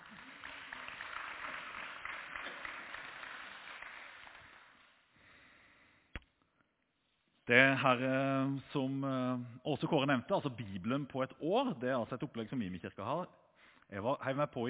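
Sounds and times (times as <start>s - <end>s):
audience applause: 0.0s - 5.4s
speech: 7.5s - 14.6s.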